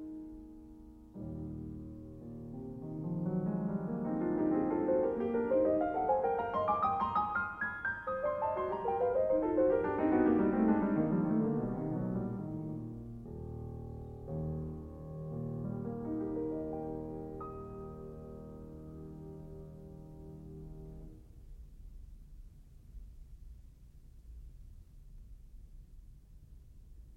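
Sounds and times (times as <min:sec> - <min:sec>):
piano prelude in E flat major: 0:00.0 - 0:21.3.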